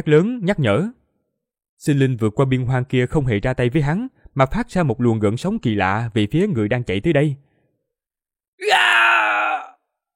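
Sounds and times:
speech: 0:00.0 - 0:01.0, 0:01.8 - 0:07.4, 0:08.6 - 0:09.3
agonized dying scream: 0:08.6 - 0:09.8.

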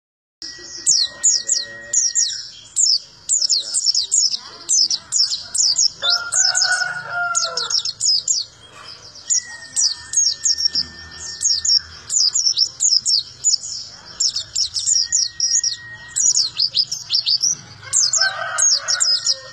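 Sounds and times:
white-eye high rapid twittering: 0:00.4 - 0:19.5.

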